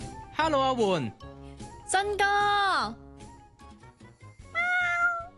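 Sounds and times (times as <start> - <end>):
speech: 0.4 - 1.3, 1.9 - 3.0
pet cat meowing in a shop: 4.4 - 5.3.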